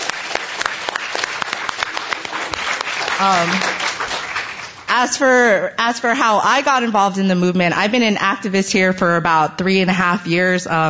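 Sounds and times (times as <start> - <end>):
audience applause: 0.0 - 4.9
speech: 3.2 - 3.8, 4.9 - 10.8.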